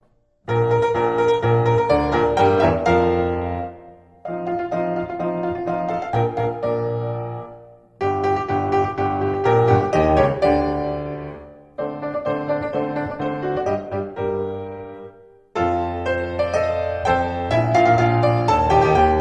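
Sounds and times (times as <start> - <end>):
national anthem played on piano: 0.4 - 19.1.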